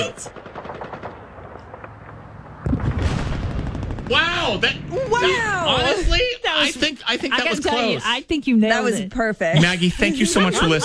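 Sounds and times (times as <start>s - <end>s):
speech: 0.0s - 0.4s, 4.1s - 10.8s
World War II machine gun fire sound effect: 0.0s - 5.3s
laughter: 9.6s - 10.8s.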